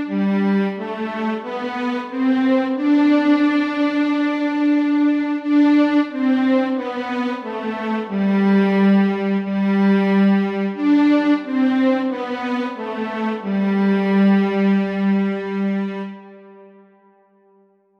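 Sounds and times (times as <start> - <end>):
violin playing string tune in G: 0.0 - 16.5.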